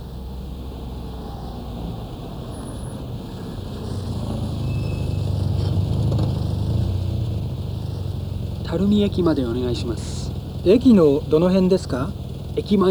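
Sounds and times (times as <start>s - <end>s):
road and wind noise: 0.0s - 12.8s
taxi engine humming as it approaches and pulls up: 0.0s - 12.8s
speech: 8.7s - 12.8s.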